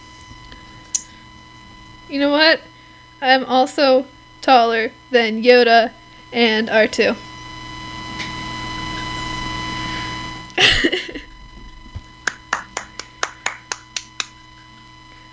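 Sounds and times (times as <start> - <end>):
speech: 2.1 - 7.3
laughter: 10.6 - 11.4, 12.3 - 14.0
clapping: 12.2 - 14.4.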